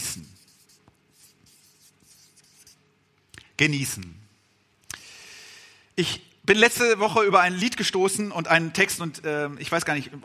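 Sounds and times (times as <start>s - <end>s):
pen scratching on paper writing a word by hand: 0.3s - 2.8s
speech: 3.6s - 4.2s, 6.0s - 10.2s.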